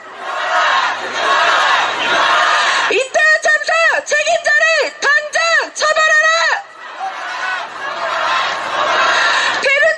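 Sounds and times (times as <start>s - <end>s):
protest crowd shouting a slogan: 0.0s - 9.9s.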